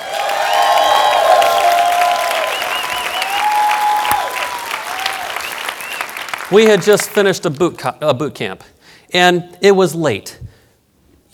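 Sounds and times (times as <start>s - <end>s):
audience applause: 0.0s - 7.6s
speech: 6.5s - 10.4s.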